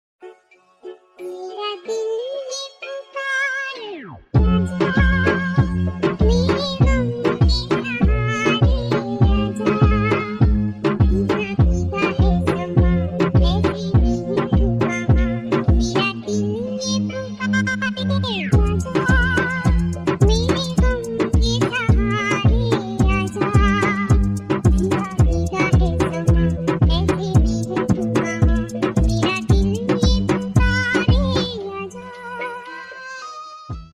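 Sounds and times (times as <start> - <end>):
remix music: 0.2 - 33.9.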